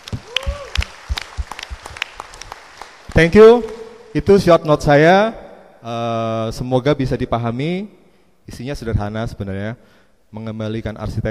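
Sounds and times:
audience applauding two guest speakers at an architecture talk: 0.0s - 3.8s
speech: 3.2s - 11.2s.

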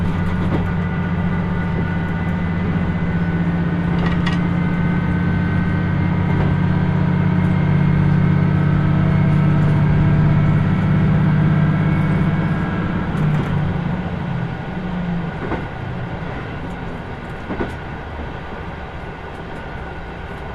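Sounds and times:
rail clicks and knocks: 0.0s - 10.9s, 11.9s - 13.7s, 15.2s - 18.4s
Kyushu Odan Express No. 3 engine drone on the Hōhi Line: 0.0s - 20.5s.

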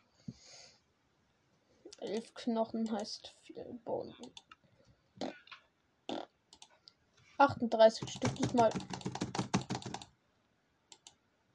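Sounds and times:
speech: 2.0s - 4.5s, 7.4s - 9.2s
loud typing on a computer keyboard: 7.9s - 10.1s.

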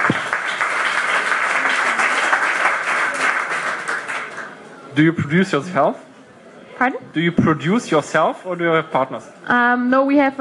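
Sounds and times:
audience applause: 0.0s - 4.7s
speech: 5.0s - 6.1s, 6.8s - 10.3s.

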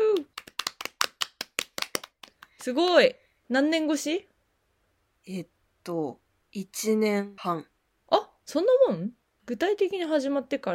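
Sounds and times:
hand clapping: 0.0s - 3.0s
speech: 2.6s - 4.3s, 5.2s - 10.7s.

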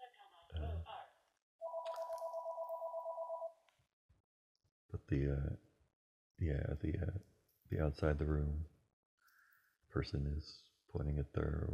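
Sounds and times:
telephone ringing with a warbling electronic trill: 1.6s - 3.6s
speech: 5.0s - 5.7s, 6.4s - 8.8s, 9.9s - 11.7s.

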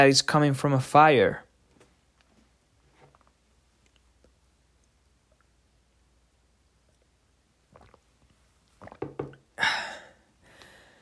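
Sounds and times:
speech: 0.0s - 1.4s
person sipping water and gulping: 2.8s - 5.6s, 6.8s - 10.8s
sharp breathy exhale after drinking: 9.6s - 10.9s.

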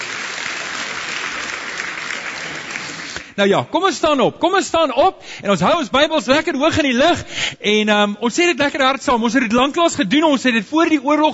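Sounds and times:
audience applauding: 0.0s - 3.4s
speech: 3.4s - 11.3s.

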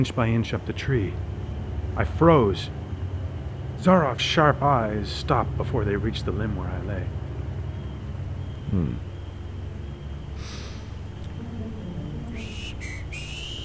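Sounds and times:
speech: 0.0s - 1.3s, 2.0s - 2.8s, 3.8s - 7.2s, 8.7s - 9.1s
low steady rumble: 0.0s - 13.6s
whistled tune: 9.7s - 13.6s.

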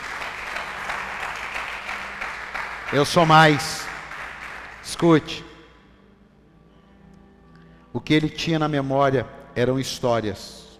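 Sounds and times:
audience applause: 0.0s - 5.4s
speech: 2.9s - 3.8s, 4.9s - 5.5s, 8.0s - 10.6s.

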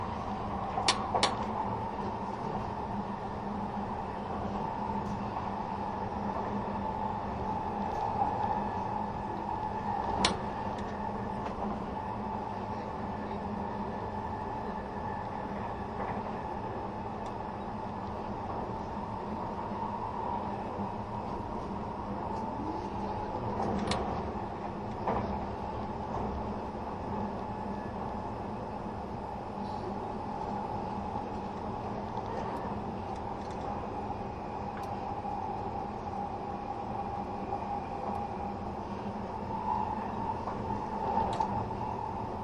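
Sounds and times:
Spacia X limited express train running: 0.0s - 42.4s
clicks and knocks from the rails: 0.7s - 1.5s.

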